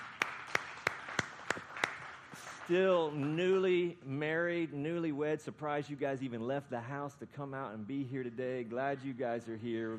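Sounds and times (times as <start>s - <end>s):
audience applause: 0.0s - 3.5s
speech: 2.7s - 9.9s.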